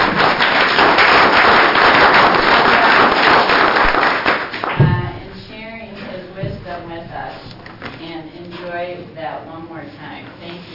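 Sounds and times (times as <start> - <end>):
audience clapping: 0.0 - 4.8.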